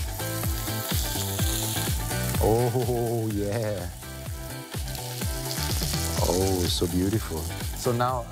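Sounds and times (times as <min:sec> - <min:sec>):
food sizzling on a grill over low fire: 0:00.0 - 0:08.3
speech: 0:02.4 - 0:04.0, 0:06.3 - 0:08.3.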